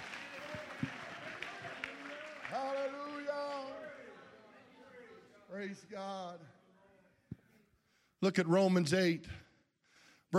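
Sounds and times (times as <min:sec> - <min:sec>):
audience clapping hands: 0:00.0 - 0:04.4
speech: 0:05.6 - 0:06.6, 0:08.2 - 0:09.4.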